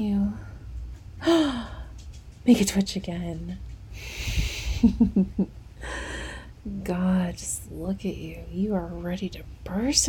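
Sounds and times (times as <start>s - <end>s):
speech: 2.5s - 6.0s, 6.6s - 10.0s
heavy breathing: 3.9s - 4.9s, 5.8s - 6.6s.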